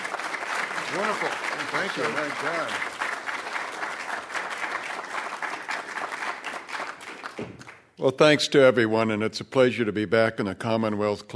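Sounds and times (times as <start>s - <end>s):
audience applause welcoming a speaker at a Commonwealth Club event: 0.0s - 7.8s
speech: 0.9s - 3.0s, 7.4s - 11.3s.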